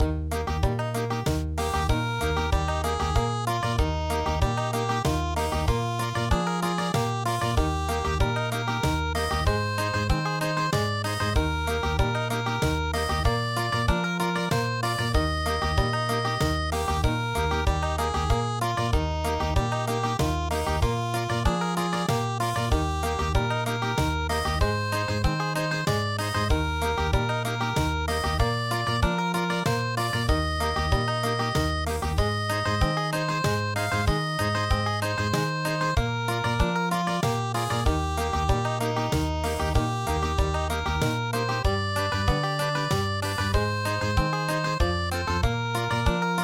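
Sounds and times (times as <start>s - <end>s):
country music: 0.0s - 46.4s.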